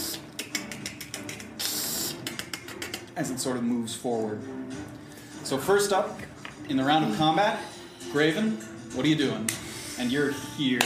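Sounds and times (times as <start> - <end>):
voice imitating hissing and clicking of a monster: 0.0 - 3.2
speech: 3.2 - 4.8, 5.5 - 10.8.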